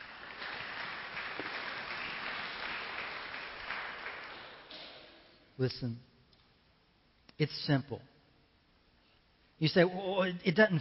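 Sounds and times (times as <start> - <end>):
round of applause: 0.0 - 5.3
speech: 5.6 - 6.1, 7.4 - 8.1, 9.6 - 10.7.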